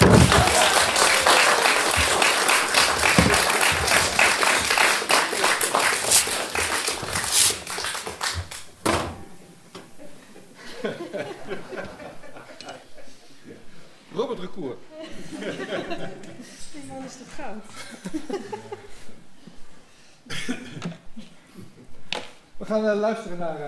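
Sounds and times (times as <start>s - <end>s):
laughter: 0.0s - 8.8s, 9.8s - 13.3s, 15.0s - 16.5s, 17.8s - 18.9s
audience applause: 0.0s - 8.9s
speech: 22.7s - 23.6s.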